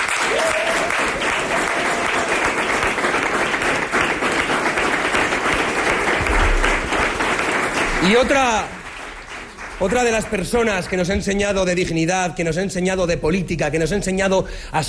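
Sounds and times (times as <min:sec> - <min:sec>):
audience applause: 0:00.0 - 0:11.1
speech: 0:08.0 - 0:08.7, 0:09.8 - 0:14.8.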